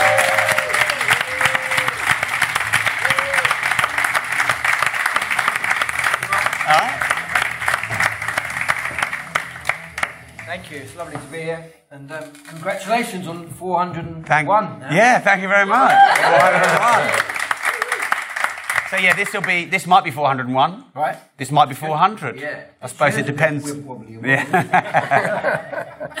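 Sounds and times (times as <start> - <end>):
large audience applause: 0.0 - 10.8, 15.8 - 19.7
speech: 11.0 - 17.3, 18.9 - 26.1
laughter: 15.8 - 17.2, 24.3 - 26.1.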